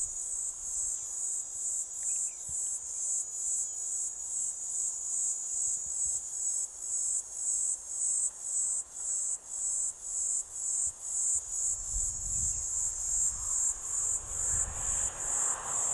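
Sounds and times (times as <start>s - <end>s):
Platypleura divisa cicada buzzing: 11.4s - 15.9s.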